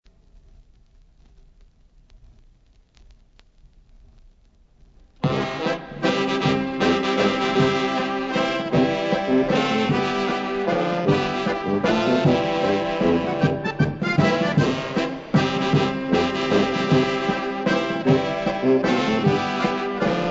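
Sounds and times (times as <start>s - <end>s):
waltz music: 5.2s - 20.2s.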